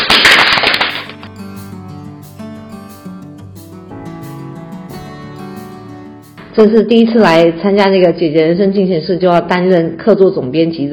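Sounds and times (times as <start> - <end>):
applause: 0.0 - 1.3
speech: 6.6 - 10.9.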